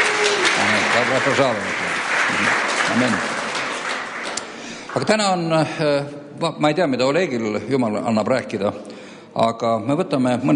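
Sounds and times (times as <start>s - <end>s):
church congregation applauding a visiting pastor from Kharkiv: 0.0s - 5.8s
speech: 1.0s - 3.3s, 5.0s - 10.5s.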